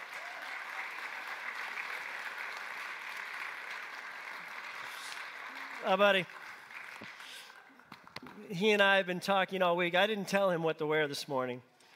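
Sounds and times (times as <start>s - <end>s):
crowd applauding: 0.0s - 8.5s
speech: 5.8s - 6.4s, 8.4s - 11.7s.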